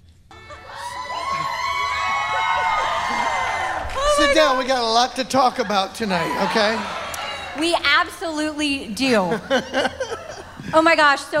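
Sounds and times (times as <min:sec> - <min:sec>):
studio audience cheering and whooping: 0:00.3 - 0:09.3
laughter: 0:00.4 - 0:07.6, 0:09.0 - 0:11.3
speech: 0:04.3 - 0:07.0, 0:07.6 - 0:10.0, 0:10.7 - 0:11.3.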